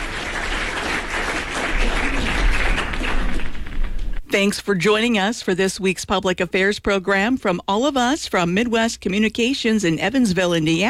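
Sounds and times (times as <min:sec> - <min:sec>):
burst of applause, many hands clapping: 0:00.0 - 0:04.2
speech: 0:04.3 - 0:10.8.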